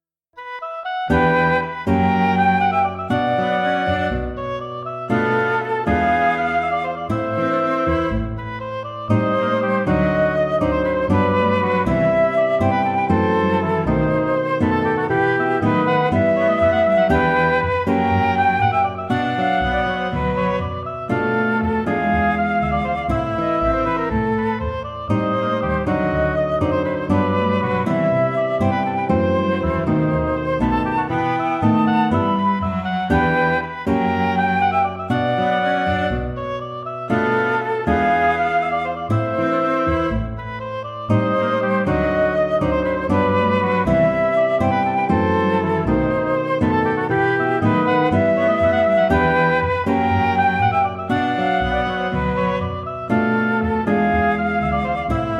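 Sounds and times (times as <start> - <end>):
quintet playing: 0.0 - 55.3.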